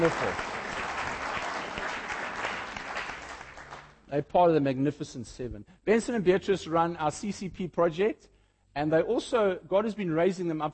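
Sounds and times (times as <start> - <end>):
speech: 0.0 - 0.5, 4.1 - 10.7
audience applause: 0.0 - 4.0.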